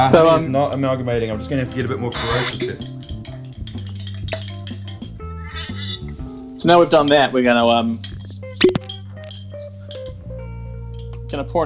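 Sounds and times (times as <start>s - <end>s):
speech: 0.0s - 3.0s, 6.6s - 8.8s, 11.3s - 11.6s
spoon stirring in a glass: 2.1s - 5.9s.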